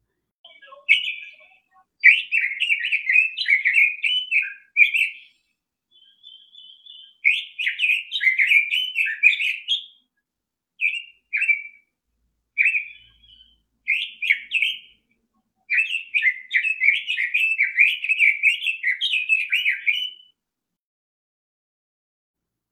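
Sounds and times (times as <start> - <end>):
Red-billed Leiothrix singing bright warbled phrases: 0.4 - 10.1, 10.8 - 11.8, 12.6 - 15.1, 15.7 - 20.3.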